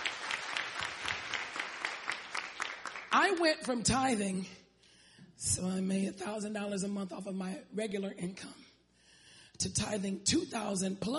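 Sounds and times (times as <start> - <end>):
audience clapping hands: 0.0 - 3.5
speech: 3.1 - 4.6, 5.4 - 8.6, 9.6 - 11.1.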